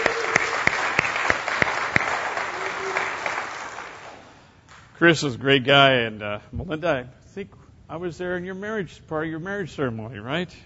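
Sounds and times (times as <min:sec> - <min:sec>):
audience applause: 0:00.0 - 0:04.4
speech: 0:05.0 - 0:10.6.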